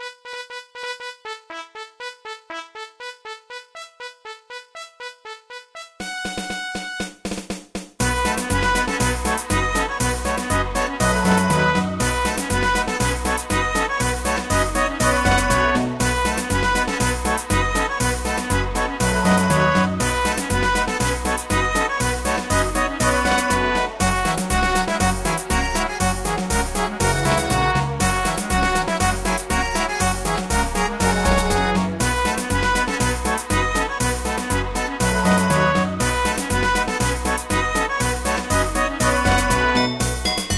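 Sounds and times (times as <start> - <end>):
fanfare: 0.0 - 7.0, 8.1 - 40.4.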